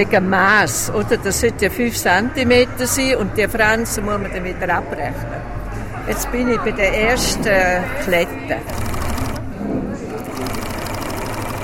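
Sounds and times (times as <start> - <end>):
speech: 0.0 - 8.9
sewing machine stitching cloth squares for picnic blankets: 8.6 - 9.4, 10.2 - 11.6.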